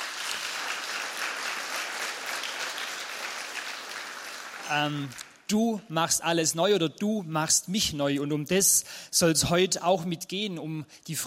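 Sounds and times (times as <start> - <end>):
audience applause for the band: 0.0 - 5.2
speech: 4.7 - 11.2.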